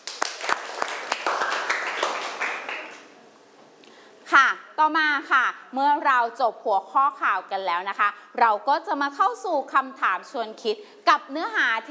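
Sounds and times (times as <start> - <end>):
students applauding: 0.0 - 3.2
speech: 4.8 - 11.8.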